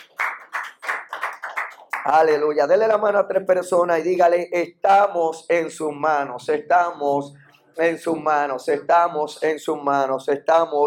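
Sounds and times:
audience applause: 0:00.0 - 0:02.1
speech: 0:02.0 - 0:10.8.

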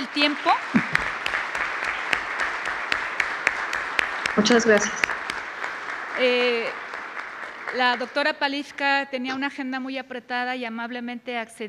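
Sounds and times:
audience applause: 0:00.0 - 0:08.7
speech: 0:00.2 - 0:00.8, 0:04.4 - 0:05.1, 0:06.2 - 0:06.8, 0:07.7 - 0:11.6.

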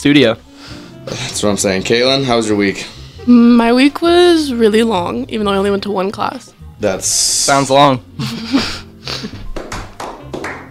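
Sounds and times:
speech: 0:00.0 - 0:09.4
slow half-hearted hand claps: 0:09.3 - 0:10.6.

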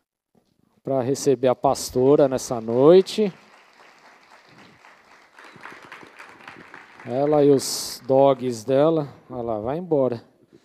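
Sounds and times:
speech: 0:00.8 - 0:03.4, 0:07.1 - 0:10.3
audience applause: 0:01.8 - 0:09.5.

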